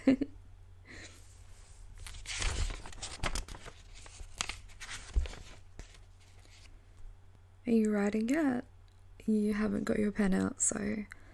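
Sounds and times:
speech: 0.1 - 0.3, 7.7 - 8.7, 9.3 - 11.2
paper pages being flipped: 1.6 - 6.7.

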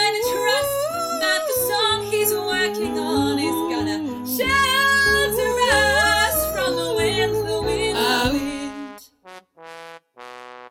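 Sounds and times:
chant: 0.2 - 8.5.

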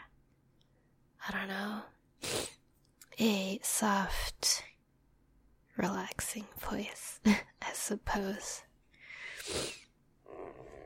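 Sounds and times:
speech: 1.3 - 2.3, 3.2 - 4.7, 5.8 - 8.7
nose sniffling: 2.2 - 2.6, 9.2 - 9.9.

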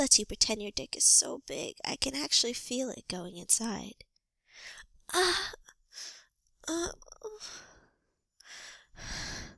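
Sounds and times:
speech: 0.0 - 6.1, 6.7 - 7.7, 9.0 - 9.5
gasp: 7.4 - 9.5.

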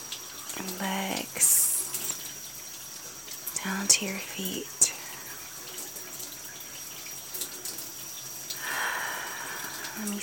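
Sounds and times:
water running from a shower head: 0.0 - 10.2
speech: 3.6 - 4.9, 10.0 - 10.2.

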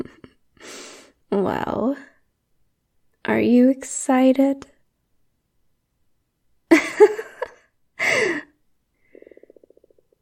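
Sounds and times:
speech: 1.5 - 2.1, 3.3 - 4.7
stomach growling: 9.1 - 10.2.

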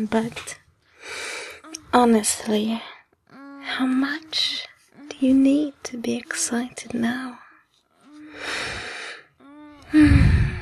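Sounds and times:
speech: 0.0 - 1.2, 2.0 - 2.9, 3.7 - 7.4, 9.9 - 10.2
heavy gasping breathing: 0.9 - 1.8, 8.2 - 10.6.

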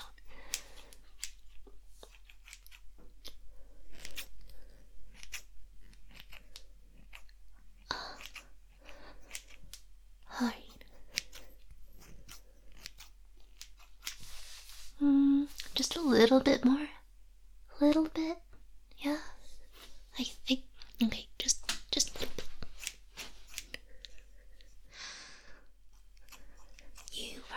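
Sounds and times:
scissors snipping hair during a careful trim: 0.0 - 9.9, 10.6 - 14.3, 20.8 - 24.8, 25.9 - 27.5
person whispering: 10.2 - 11.0, 15.0 - 17.0, 19.0 - 22.3, 27.0 - 27.5.

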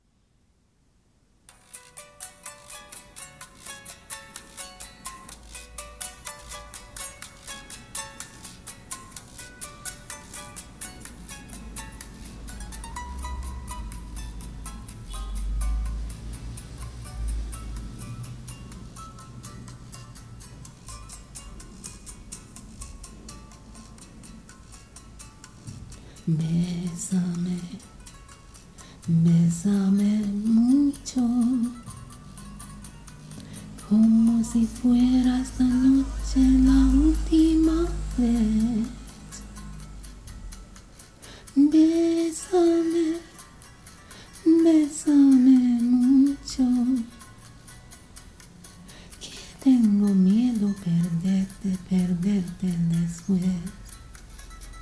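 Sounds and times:
karaoke singing: 25.7 - 27.9, 29.1 - 32.2, 33.8 - 39.6, 41.5 - 43.5, 44.4 - 47.2, 49.2 - 54.0.

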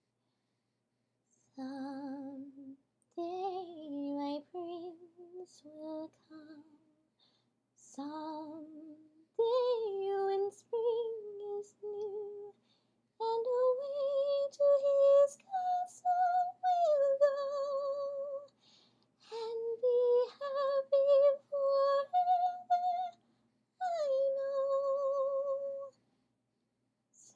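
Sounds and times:
a cappella singing: 1.6 - 6.9, 7.8 - 12.6, 13.2 - 18.5, 19.3 - 23.2, 23.8 - 26.0.

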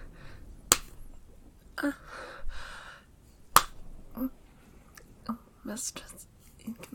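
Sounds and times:
hand smacking bare buttocks: 0.7 - 1.2, 3.5 - 4.3
speech: 1.8 - 2.3, 5.7 - 6.9
breathy gasps and sighs: 1.8 - 3.1.

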